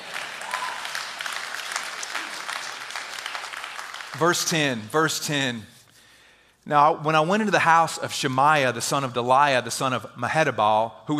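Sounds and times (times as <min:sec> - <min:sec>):
audience clapping: 0:00.0 - 0:05.0
speech: 0:04.1 - 0:05.7, 0:06.6 - 0:11.1.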